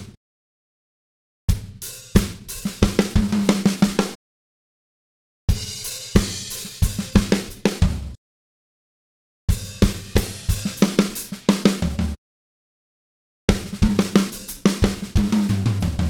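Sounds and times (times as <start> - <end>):
70s funk drum fill at 90 BPM: 1.5 - 4.2, 5.5 - 8.2, 9.5 - 12.2, 13.5 - 16.0.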